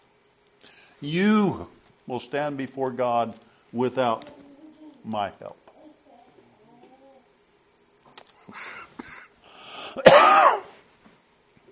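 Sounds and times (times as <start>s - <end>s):
speech: 1.0s - 4.4s, 5.0s - 5.6s
speaker coughing and clearing throat: 10.0s - 10.8s.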